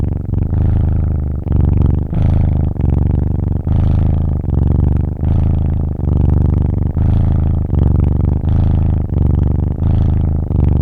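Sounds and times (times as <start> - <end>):
kitten purring: 0.0 - 10.8.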